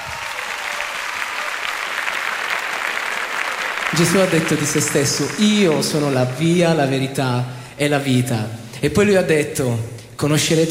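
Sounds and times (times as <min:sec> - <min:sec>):
audience applause: 0:00.0 - 0:07.2
speech: 0:03.9 - 0:10.6.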